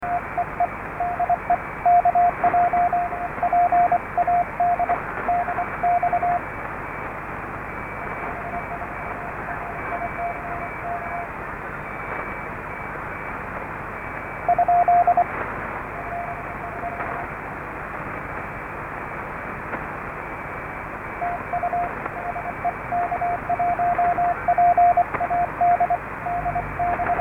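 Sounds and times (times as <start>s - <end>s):
synth pad: 0.0s - 27.2s.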